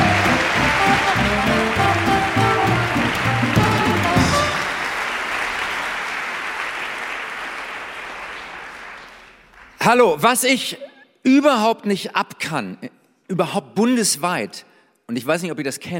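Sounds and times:
music playing: 0:00.0 - 0:05.1
audience applause: 0:00.0 - 0:09.8
speech: 0:09.9 - 0:15.9.

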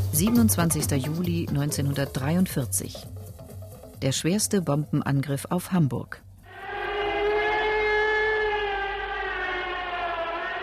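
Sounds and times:
speech: 0:00.2 - 0:03.2, 0:04.0 - 0:06.3
air raid siren wailing: 0:06.5 - 0:10.6.

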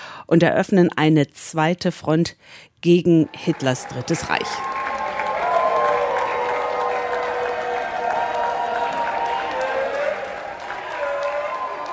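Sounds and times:
speech: 0:00.3 - 0:04.8
crowd noise at Charles de Gaulle airport in Paris: 0:03.1 - 0:11.9
applause greeting elderly US D-Day veterans at Charles de Gaulle airport: 0:03.2 - 0:11.9.

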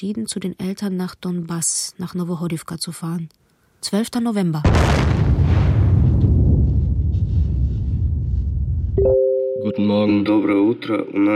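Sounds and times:
speech: 0:00.0 - 0:05.7, 0:09.0 - 0:11.3
rocket explosions: 0:04.6 - 0:09.0
air defense fire: 0:04.7 - 0:07.1.

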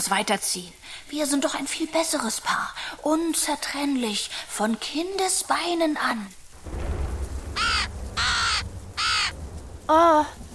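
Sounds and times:
speech: 0:00.0 - 0:06.8, 0:09.9 - 0:10.4
faint low rumble: 0:06.6 - 0:10.5
crow cawing: 0:07.5 - 0:09.5.

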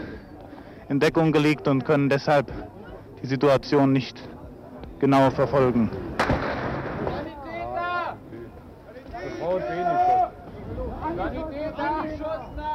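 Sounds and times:
crowd noise: 0:00.0 - 0:12.7
speech: 0:00.9 - 0:04.4, 0:05.0 - 0:06.0
gunshot during uprising: 0:06.2 - 0:07.2
agitated people shouting and calling: 0:09.1 - 0:10.4.

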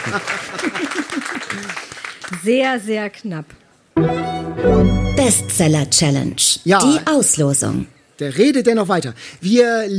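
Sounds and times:
live audience applause: 0:00.0 - 0:02.3
speech: 0:00.1 - 0:09.9.

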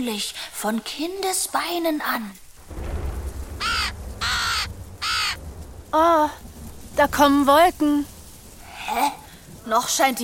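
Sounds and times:
speech: 0:00.0 - 0:02.8, 0:05.9 - 0:06.4, 0:07.0 - 0:08.1, 0:08.9 - 0:10.2
crow cawing: 0:03.6 - 0:05.6.

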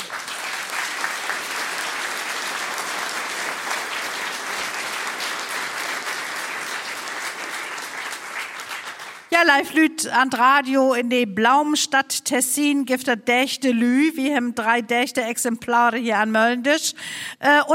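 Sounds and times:
applause: 0:00.0 - 0:09.4
speech: 0:09.4 - 0:17.7.

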